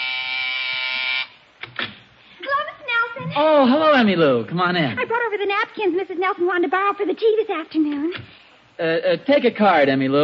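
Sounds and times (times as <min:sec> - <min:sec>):
doorbell buzzer ringing: 0:00.0 - 0:01.4
faint hum: 0:01.2 - 0:10.2
speech: 0:03.4 - 0:10.2.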